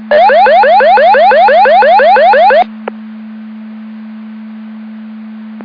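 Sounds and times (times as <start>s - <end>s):
siren: 0.1s - 2.7s.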